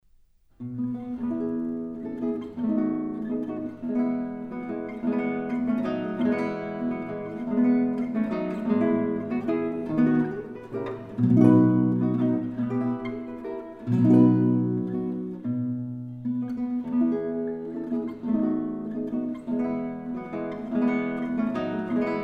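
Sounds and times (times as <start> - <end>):
piano four-hand waltzes transcribed for guitar: 0.6 - 22.2.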